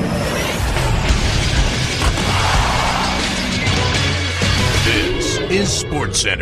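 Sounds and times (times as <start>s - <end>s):
sports news background music: 0.2s - 6.4s.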